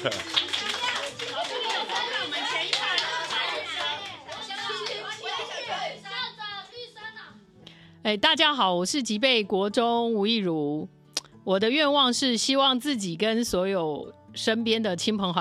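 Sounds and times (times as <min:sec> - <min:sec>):
speech: 0:00.0 - 0:00.4, 0:08.0 - 0:15.3
audience clapping: 0:00.0 - 0:05.6.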